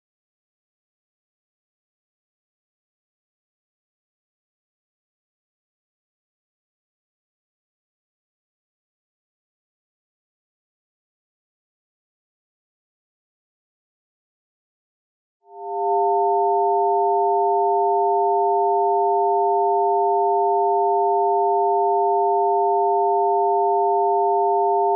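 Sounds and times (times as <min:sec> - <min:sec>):
flood alarm all-clear signal: 0:15.5 - 0:24.9.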